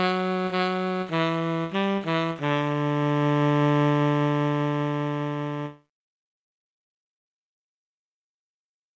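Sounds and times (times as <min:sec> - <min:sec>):
tenor saxophone: 0:00.0 - 0:05.9.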